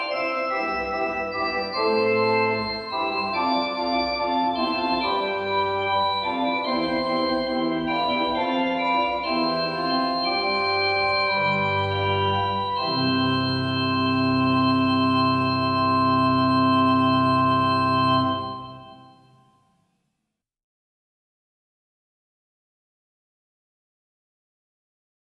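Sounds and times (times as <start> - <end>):
fugue in C major: 0.0 - 19.3.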